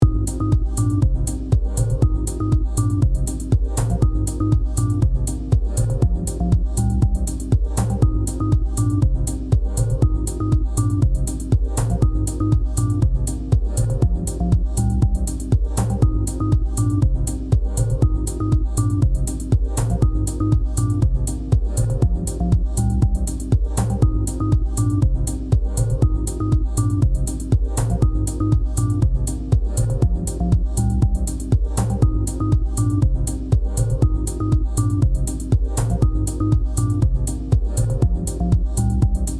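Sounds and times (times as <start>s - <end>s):
synthesizer: 0.0s - 39.3s.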